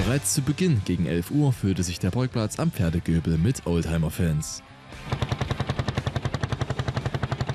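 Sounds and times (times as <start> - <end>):
speech: 0.1 - 5.2
many two-stroke engines running: 4.9 - 7.5.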